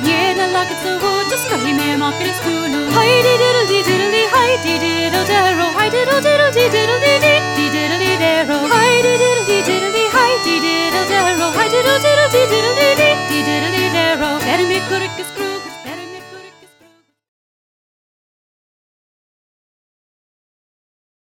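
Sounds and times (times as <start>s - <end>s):
Irish singer singing: 0.0s - 16.8s.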